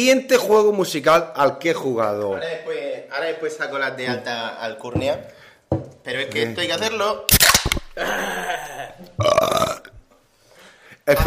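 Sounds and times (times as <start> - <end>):
speech: 0.0 - 5.4, 6.0 - 9.4, 11.1 - 11.2
loud exaggerated burp: 7.9 - 10.0.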